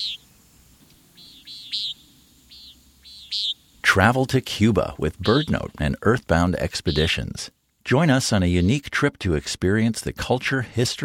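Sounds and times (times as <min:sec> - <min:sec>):
common nighthawk calling: 0:00.0 - 0:07.4
speech: 0:03.9 - 0:11.0.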